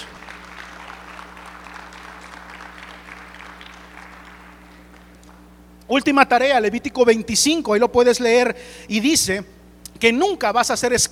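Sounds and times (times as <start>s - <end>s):
audience applauding: 0.0s - 5.4s
speech: 5.9s - 11.1s.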